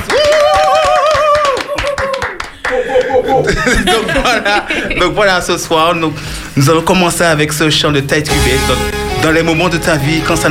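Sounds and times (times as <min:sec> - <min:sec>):
whoops and cheering voices: 0:00.0 - 0:03.4
crowd clapping: 0:00.0 - 0:03.6
laughter: 0:02.7 - 0:05.2
speech: 0:03.4 - 0:10.4.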